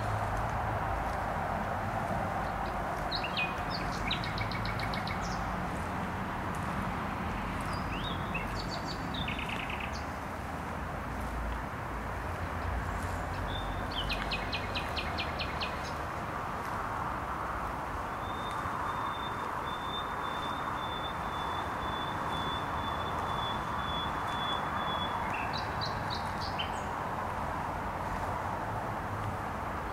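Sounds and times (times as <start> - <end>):
heavy traffic roar: 0.0 - 29.9
nightingale singing: 3.0 - 5.5, 7.6 - 10.1, 13.4 - 16.0, 18.1 - 26.9.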